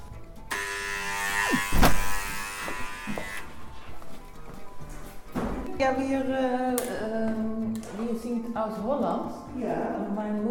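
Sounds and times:
doorbell buzzer electric buzz: 0.5 - 3.4
speech: 5.8 - 7.5, 8.1 - 10.5.

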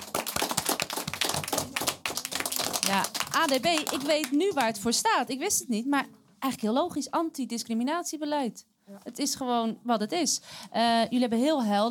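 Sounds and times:
applause for a school group's presentation: 0.0 - 5.0
speech: 2.9 - 11.8.

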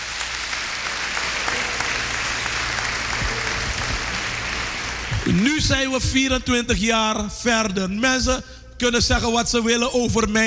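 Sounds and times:
audience applauding: 0.0 - 5.4
speech: 5.3 - 10.4.

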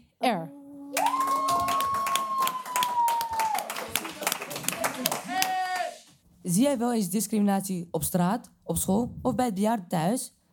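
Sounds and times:
speech: 0.2 - 0.6, 6.5 - 10.4
audience applause: 0.9 - 6.0.

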